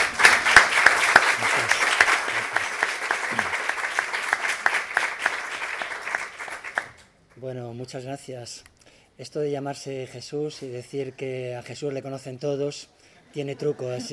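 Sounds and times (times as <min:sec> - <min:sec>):
audience applause: 0:00.0 - 0:07.0
speech: 0:07.8 - 0:14.1.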